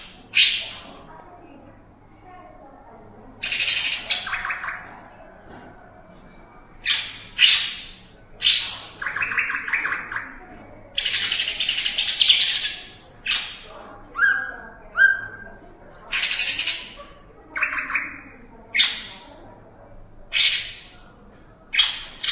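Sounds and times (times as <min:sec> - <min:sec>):
greater green leafbird song: 0:00.0 - 0:01.0, 0:03.4 - 0:04.9, 0:06.8 - 0:10.4, 0:11.0 - 0:17.0, 0:17.6 - 0:19.2, 0:20.3 - 0:20.9, 0:21.7 - 0:22.3.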